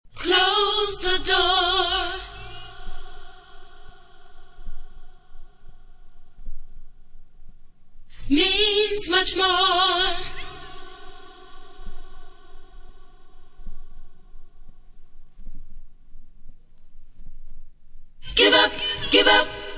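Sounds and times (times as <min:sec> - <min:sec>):
a cappella background vocals: 0:00.1 - 0:05.8, 0:08.2 - 0:13.6, 0:18.2 - 0:19.7.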